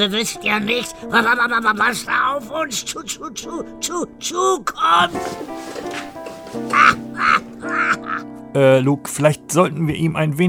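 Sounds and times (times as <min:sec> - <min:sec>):
speech: 0:00.0 - 0:10.4
birds croaking outside: 0:05.9 - 0:08.2.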